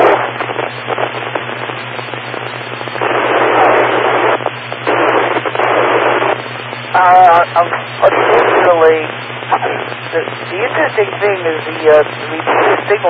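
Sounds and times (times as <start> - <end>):
radio static: 0.0 - 13.0
speech: 10.1 - 13.0.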